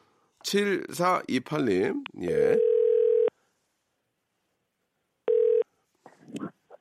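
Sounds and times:
speech: 0.5 - 2.7
buzzy telephone dialing tones: 2.5 - 3.3, 5.3 - 5.6.

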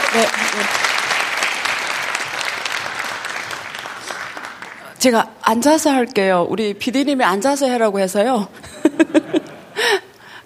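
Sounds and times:
audience applause: 0.0 - 5.0
speech: 0.1 - 1.0, 5.0 - 9.3
laughter: 8.6 - 9.9.

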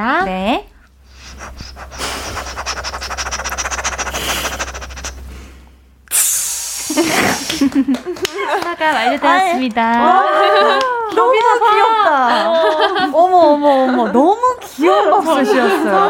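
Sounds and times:
speech: 0.0 - 0.7, 7.0 - 16.0
voice imitating a rice cooker steam hiss: 1.1 - 7.8
laughter: 6.9 - 16.0.

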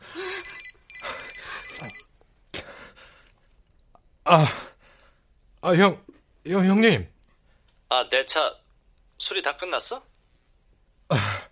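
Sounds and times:
telephone ringing with metallic bell: 0.0 - 2.1
speech: 4.3 - 4.6, 5.6 - 7.1, 7.9 - 8.6, 9.2 - 10.1.

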